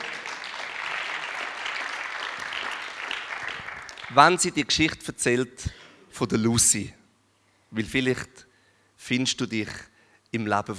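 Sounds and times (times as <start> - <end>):
audience applause: 0.0 - 4.2
speech: 4.1 - 7.0, 7.7 - 10.7.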